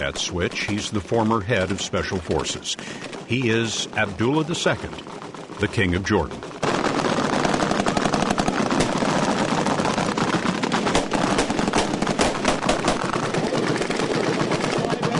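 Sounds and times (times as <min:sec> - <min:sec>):
speech: 0:00.0 - 0:06.5
live ammunition gunfire in training: 0:00.0 - 0:15.1.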